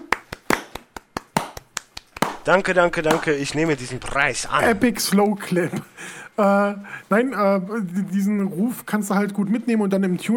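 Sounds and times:
hand clapping applause: 0.0s - 3.5s
speech: 2.4s - 10.3s.

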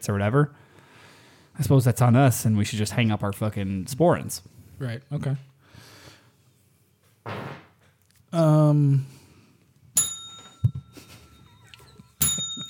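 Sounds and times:
speech: 0.0s - 0.7s, 1.6s - 5.9s, 8.3s - 9.1s
bell ringing: 10.0s - 12.6s.

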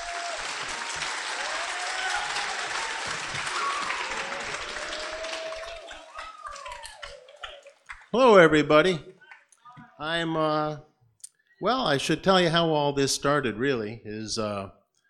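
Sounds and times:
people whooping: 0.0s - 7.9s
audience applause: 0.0s - 8.6s
speech: 8.1s - 9.1s, 10.0s - 10.9s, 11.6s - 14.8s.

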